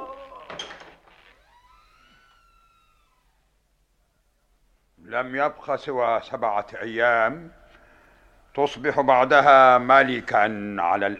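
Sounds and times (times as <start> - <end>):
door being opened: 0.0 - 3.5
speech: 5.1 - 7.6, 8.6 - 11.1.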